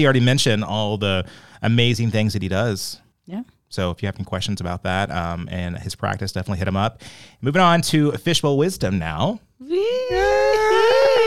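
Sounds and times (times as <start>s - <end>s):
speech: 0.0s - 10.3s
person screaming: 9.6s - 11.2s.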